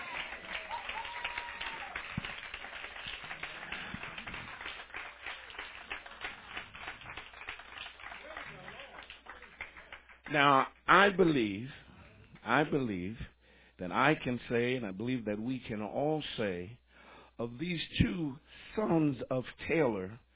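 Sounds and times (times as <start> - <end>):
audience applause: 0.0 - 10.4
speech: 10.3 - 11.8, 12.5 - 16.8, 17.4 - 20.2.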